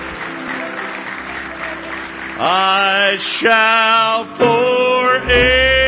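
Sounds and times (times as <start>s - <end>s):
audience hand clapping: 0.0s - 4.0s
speech: 2.4s - 5.7s.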